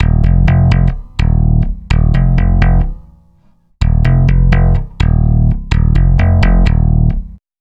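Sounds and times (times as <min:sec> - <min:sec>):
stick bass loop: 0:00.0 - 0:07.4.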